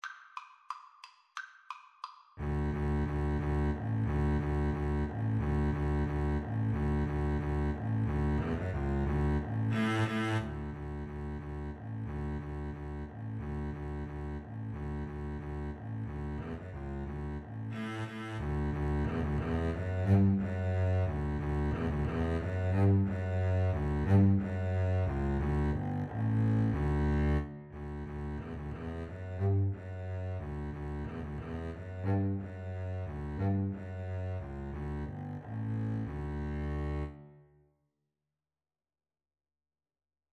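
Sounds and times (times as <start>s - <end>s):
double bass: 2.4s - 37.3s
violin: 2.4s - 37.4s.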